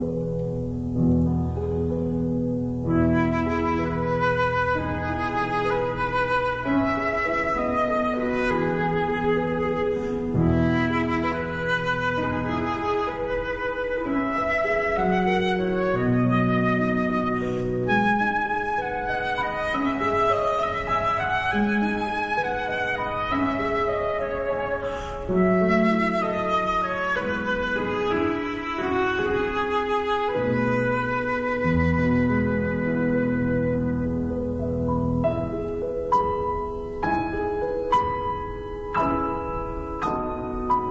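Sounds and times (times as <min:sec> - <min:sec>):
flute and piano lullaby: 0:00.0 - 0:40.9.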